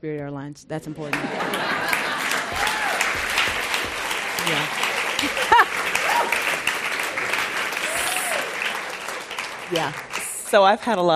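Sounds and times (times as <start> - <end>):
speech: 0.0 - 3.2, 4.4 - 6.6, 9.7 - 11.1
laughter: 1.0 - 9.9
crowd applauding: 1.1 - 10.9
whoops and cheers: 2.3 - 6.7, 7.7 - 8.9.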